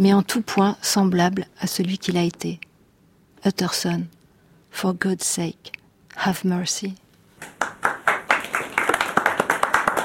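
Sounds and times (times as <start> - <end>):
speech: 0.0 - 2.7, 3.4 - 7.6
students applauding: 7.4 - 10.0.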